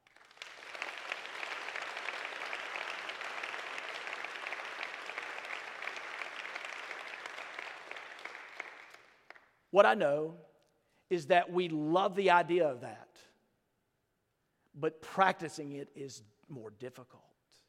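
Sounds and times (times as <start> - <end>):
audience clapping: 0.0 - 9.6
speech: 9.8 - 10.5, 11.1 - 13.0, 14.8 - 17.3.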